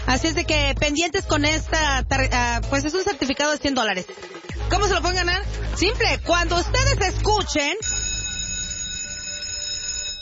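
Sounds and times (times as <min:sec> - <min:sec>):
speech: 0:00.1 - 0:08.0
school bell ringing: 0:07.8 - 0:10.2.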